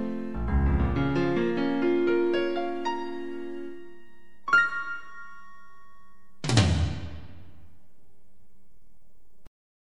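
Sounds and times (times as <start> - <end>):
jazz music: 0.0 - 6.4.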